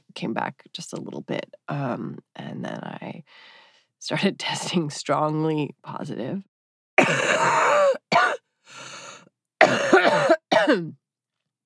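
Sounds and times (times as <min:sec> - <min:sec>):
speech: 0:00.2 - 0:08.0, 0:09.7 - 0:11.0
wheezy breath drawn in: 0:03.3 - 0:03.9, 0:08.6 - 0:09.3
harsh throaty coughing: 0:07.0 - 0:10.9.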